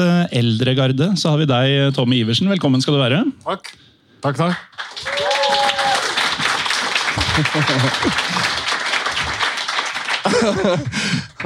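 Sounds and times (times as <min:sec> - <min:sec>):
speech: 0:00.0 - 0:05.2, 0:07.4 - 0:08.6, 0:10.2 - 0:11.3
audience applause: 0:04.5 - 0:11.4
cheering: 0:04.9 - 0:10.1
laughter: 0:07.1 - 0:11.4.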